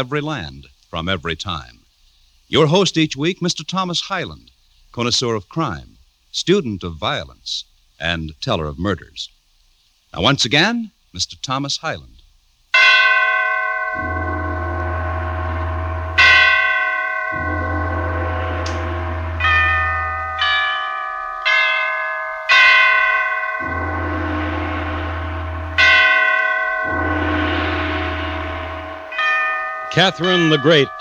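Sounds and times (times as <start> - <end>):
speech: 0.0 - 1.8, 2.5 - 9.4, 10.1 - 12.2, 14.0 - 14.2, 30.0 - 30.9
large deep church bells tolling a requiem: 12.8 - 30.9.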